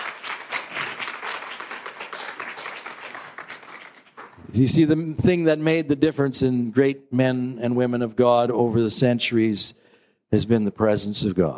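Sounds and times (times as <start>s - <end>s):
crowd clapping: 0.0s - 4.8s
speech: 4.6s - 11.5s.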